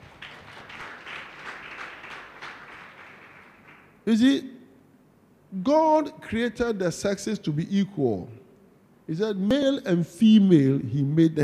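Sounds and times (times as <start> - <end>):
audience clapping hands: 0.0 - 4.0
speech: 4.1 - 4.6, 5.5 - 8.4, 9.1 - 11.4.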